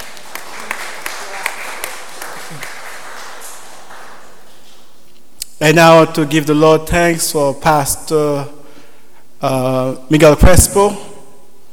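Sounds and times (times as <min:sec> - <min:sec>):
audience applause: 0:00.0 - 0:04.6
speech: 0:05.6 - 0:08.6, 0:09.4 - 0:11.1.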